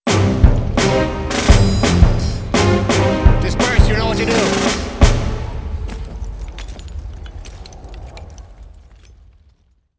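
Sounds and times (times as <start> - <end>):
score music: 0.0 - 5.8.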